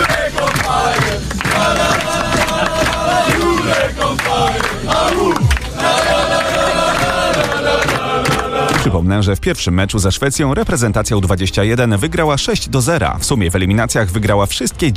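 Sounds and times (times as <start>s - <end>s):
football players chanting and shouting celebrating a win: 0.0s - 9.0s
speech: 9.0s - 14.9s.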